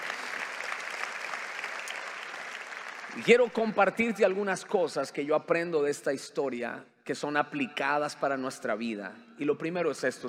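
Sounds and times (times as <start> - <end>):
audience applause: 0.0 - 3.8
speech: 3.1 - 10.2.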